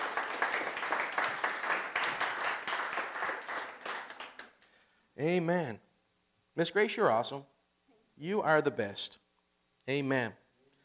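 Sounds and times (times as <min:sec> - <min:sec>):
audience applause: 0:00.0 - 0:04.6
speech: 0:05.2 - 0:05.9, 0:06.6 - 0:07.5, 0:08.2 - 0:09.2, 0:09.8 - 0:10.4.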